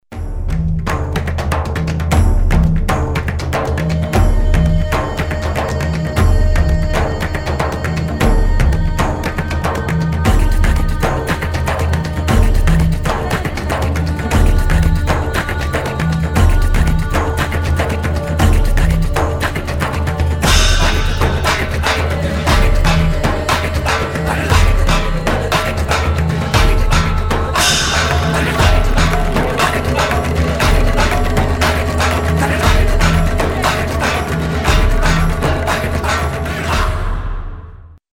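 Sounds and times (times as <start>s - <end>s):
mystical Indian music: 0.1s - 38.0s.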